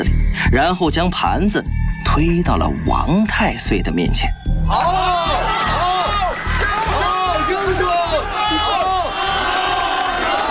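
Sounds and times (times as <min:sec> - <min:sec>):
speech: 0:00.0 - 0:05.2
crowd of onlookers cheering: 0:04.7 - 0:10.5.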